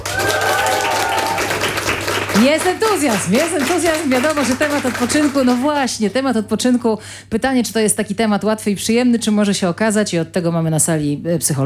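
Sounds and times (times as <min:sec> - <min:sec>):
studio audience applause: 0:00.0 - 0:05.9
speech: 0:02.4 - 0:11.6.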